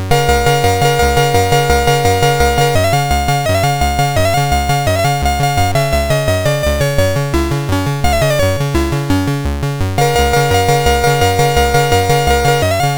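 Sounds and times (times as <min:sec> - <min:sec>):
chiptune music on MOS6581R4 sound chip: 0:00.1 - 0:12.9.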